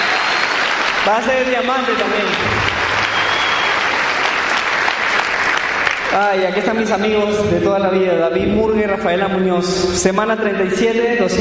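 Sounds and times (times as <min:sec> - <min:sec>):
audience applause: 0:00.0 - 0:07.0
speech: 0:01.0 - 0:02.7, 0:06.1 - 0:11.3.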